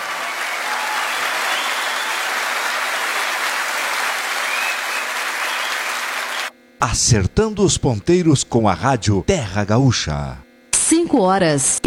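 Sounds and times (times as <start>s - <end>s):
audience applause: 0.0s - 6.5s
speech: 6.8s - 10.5s, 11.1s - 11.8s.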